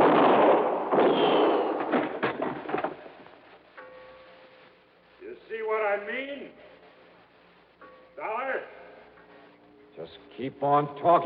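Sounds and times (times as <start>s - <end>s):
gunshots in a standoff between an investigator and an armed man: 0.0s - 3.3s
speech: 10.1s - 11.2s.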